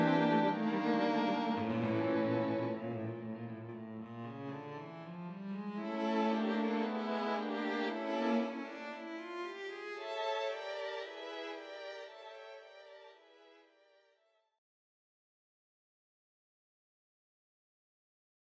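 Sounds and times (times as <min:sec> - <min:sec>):
string quartet playing: 0:00.0 - 0:13.0.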